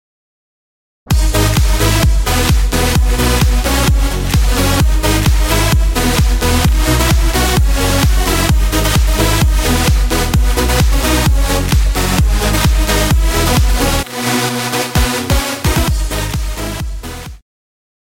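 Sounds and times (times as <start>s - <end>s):
club music: 1.1s - 17.4s.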